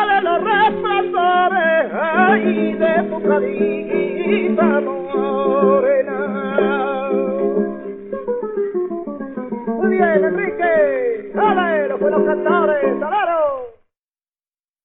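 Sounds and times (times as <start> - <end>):
person singing a soleá: 0.0 - 8.0, 9.7 - 13.8
guitar: 0.0 - 13.8.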